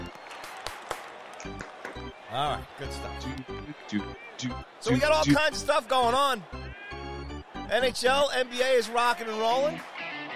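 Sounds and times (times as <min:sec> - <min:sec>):
clapping: 0:00.0 - 0:02.1, 0:09.6 - 0:10.3
speech: 0:02.3 - 0:06.8, 0:07.7 - 0:09.9.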